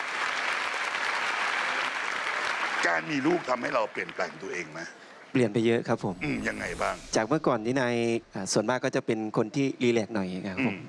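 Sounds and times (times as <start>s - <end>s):
audience applause: 0.0s - 5.1s
speech: 2.8s - 10.8s.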